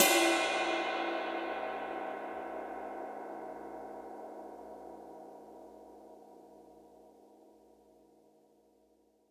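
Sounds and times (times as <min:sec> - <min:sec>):
ride cymbal: 0:00.0 - 0:03.8.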